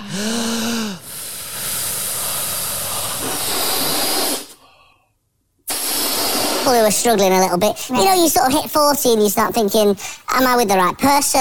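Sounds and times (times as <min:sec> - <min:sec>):
speech: 0:00.2 - 0:00.4, 0:06.7 - 0:11.3
balloon being blown up: 0:01.0 - 0:04.6, 0:05.7 - 0:06.8.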